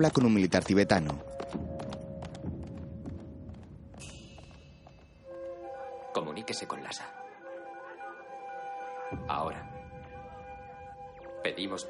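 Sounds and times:
speech: 0.0s - 1.4s, 6.5s - 7.2s, 9.2s - 9.7s, 11.4s - 11.8s
horse hooves as a rider climbs a mountain toward Chamdo in Tibet: 0.0s - 5.7s.

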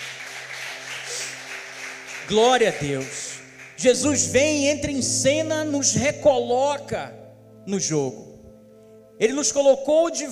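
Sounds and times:
audience applauding: 0.0s - 4.2s
speech: 2.3s - 3.2s, 3.8s - 8.3s, 9.2s - 10.2s.

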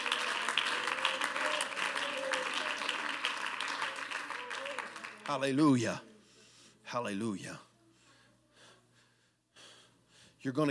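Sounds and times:
audience clapping hands: 0.0s - 5.8s
speech: 5.3s - 6.1s, 6.9s - 7.7s, 10.4s - 10.6s.

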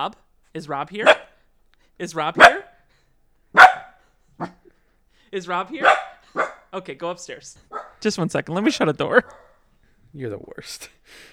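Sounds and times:
speech: 0.0s - 1.2s, 2.0s - 2.6s, 5.3s - 6.0s, 6.7s - 9.4s, 10.1s - 11.3s
dog barking: 1.0s - 1.4s, 2.3s - 2.9s, 3.5s - 4.7s, 5.6s - 6.8s, 7.6s - 8.1s, 9.1s - 9.7s.

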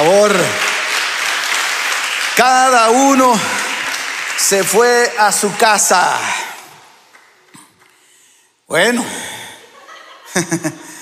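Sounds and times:
speech: 0.0s - 0.6s, 2.4s - 3.6s, 4.4s - 6.4s, 8.7s - 9.3s, 10.3s - 10.9s
audience applause: 0.0s - 7.9s
laughter: 9.6s - 11.0s.

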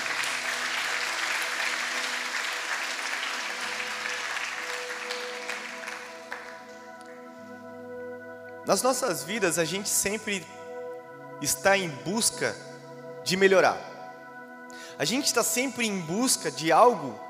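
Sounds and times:
audience applause: 0.0s - 6.7s
speech: 8.7s - 10.6s, 11.4s - 13.9s, 15.0s - 17.2s.

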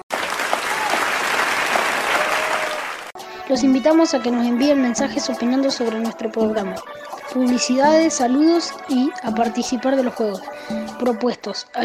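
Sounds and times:
applause: 0.0s - 3.1s
speech: 3.5s - 11.8s.

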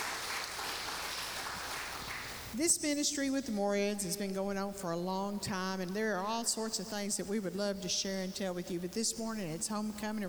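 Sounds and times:
audience applauding the choir: 0.0s - 2.5s
speech: 2.6s - 10.2s.

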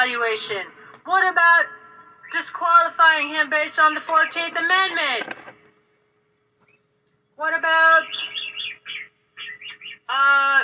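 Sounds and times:
speech: 0.0s - 5.6s, 7.4s - 8.4s, 9.6s - 10.6s
goose calling: 7.9s - 10.2s.

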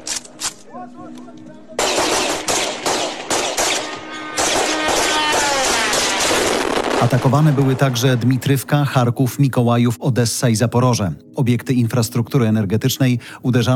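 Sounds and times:
police automatic rifle fire at a drone: 1.8s - 7.9s
speech: 7.0s - 13.7s.

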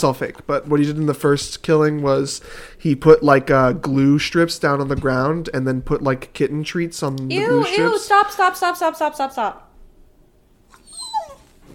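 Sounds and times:
speech: 0.0s - 9.7s
dog whimpering: 10.7s - 11.7s.

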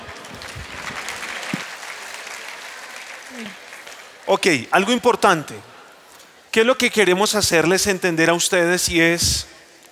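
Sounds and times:
room full of people clapping: 0.0s - 4.8s
speech: 4.3s - 5.7s, 6.6s - 9.9s.

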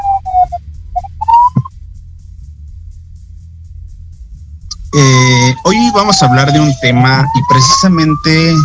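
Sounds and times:
ambulance siren passing by: 0.0s - 1.7s, 4.7s - 8.6s
steady low traffic rumble: 0.0s - 8.6s
speech: 5.0s - 8.6s.

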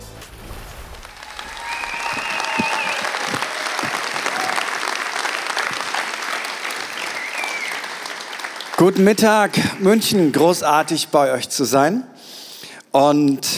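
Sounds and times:
welcome applause at a church stage event in Munich: 0.9s - 10.6s
speech: 8.9s - 12.1s, 13.0s - 13.5s.

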